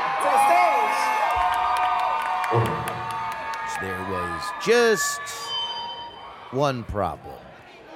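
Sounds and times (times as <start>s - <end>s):
concert crowd screaming and cheering: 0.0s - 6.2s
speech: 2.5s - 2.9s, 3.7s - 5.6s, 6.5s - 7.4s.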